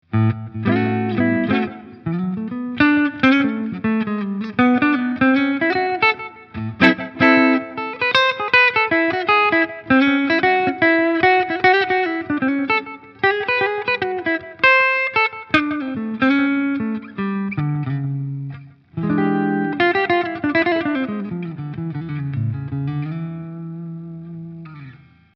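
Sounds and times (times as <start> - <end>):
clean jazzy bluesy guitar: 0.0 - 25.3.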